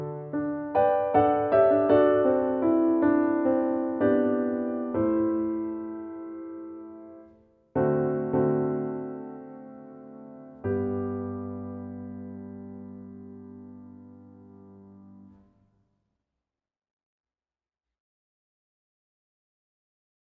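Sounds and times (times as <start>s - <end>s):
piano: 0.0s - 15.8s.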